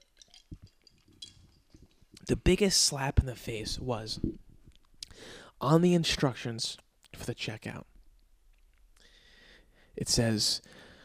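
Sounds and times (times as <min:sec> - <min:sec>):
glass clinking: 0:00.0 - 0:02.0
speech: 0:02.3 - 0:04.4, 0:05.2 - 0:07.9, 0:10.0 - 0:10.8.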